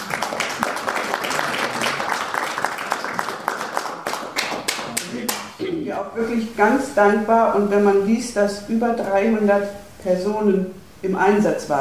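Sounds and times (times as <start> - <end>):
audience clapping: 0.0 - 5.6
speech: 6.2 - 11.8.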